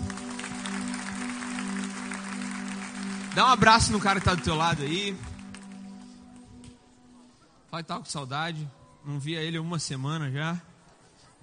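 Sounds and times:
audience applause: 0.0 - 6.2
speech: 3.4 - 5.3, 7.7 - 10.7.

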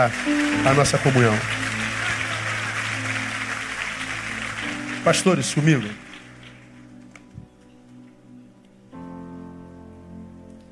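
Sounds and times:
speech: 0.0 - 1.6, 5.0 - 6.0
audience applause: 0.0 - 7.3.

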